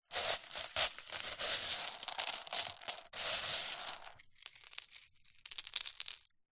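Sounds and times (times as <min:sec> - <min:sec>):
pile of crushed ice pieces being dug: 0:00.0 - 0:04.7.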